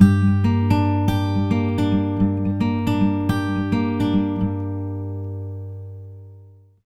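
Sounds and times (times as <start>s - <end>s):
acoustic guitar picking loop in G: 0.0s - 6.8s.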